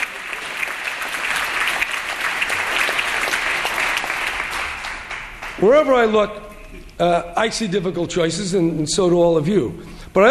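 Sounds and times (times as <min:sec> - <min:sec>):
audience applause: 0:00.0 - 0:05.8
speech: 0:05.6 - 0:10.2.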